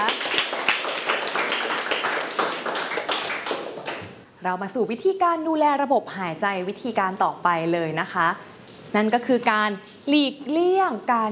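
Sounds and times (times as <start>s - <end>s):
group applauding a demonstrator: 0.0s - 4.2s
speech: 4.4s - 11.3s.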